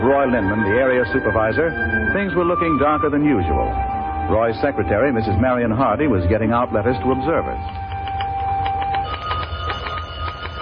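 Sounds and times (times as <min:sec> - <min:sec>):
speech: 0:00.1 - 0:07.8
telephone bell ringing: 0:08.8 - 0:10.6.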